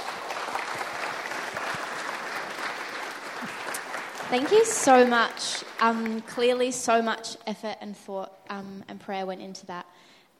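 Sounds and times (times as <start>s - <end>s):
audience applause: 0.0s - 6.7s
speech: 4.3s - 10.3s.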